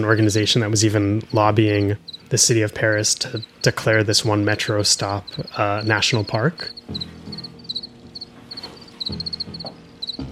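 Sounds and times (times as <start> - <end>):
speech: 0.0 - 7.2
crickets chirping: 0.0 - 10.3.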